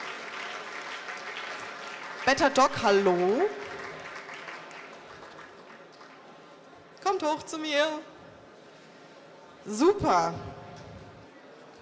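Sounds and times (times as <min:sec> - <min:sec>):
audience applause: 0:00.0 - 0:06.4
speech: 0:02.3 - 0:03.7, 0:07.2 - 0:08.1, 0:09.6 - 0:10.5.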